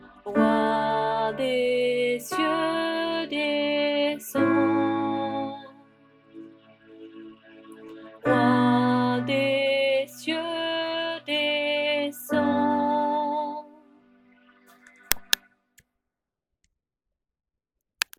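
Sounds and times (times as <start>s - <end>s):
alto voice: 0.0s - 6.0s, 8.2s - 14.0s.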